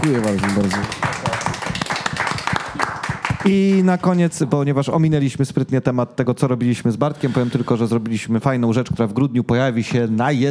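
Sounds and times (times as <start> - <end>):
speech: 0.0 - 1.1, 3.4 - 10.4
audience applause: 0.0 - 4.4.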